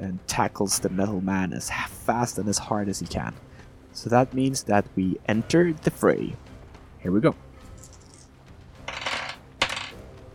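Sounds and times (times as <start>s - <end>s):
speech: 0.3s - 7.4s
dice rolling on a hard table: 7.8s - 8.3s, 8.9s - 10.0s.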